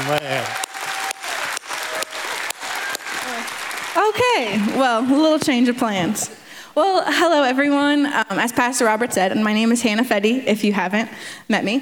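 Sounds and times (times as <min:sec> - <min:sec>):
church congregation applauding to welcome the youth leader: 0:00.0 - 0:05.0
speech: 0:00.1 - 0:00.6, 0:04.0 - 0:11.8.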